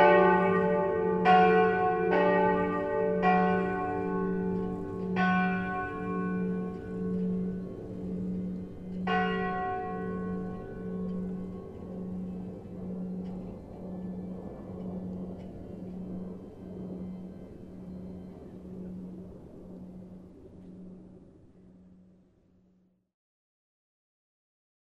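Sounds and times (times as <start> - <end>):
bells ringing: 0.0 - 19.4.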